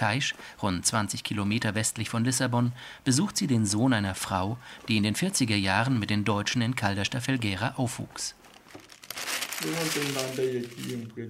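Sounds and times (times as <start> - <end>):
speech: 0.0 - 8.4, 9.2 - 11.2
pages of a large old photo album turning: 8.4 - 11.1.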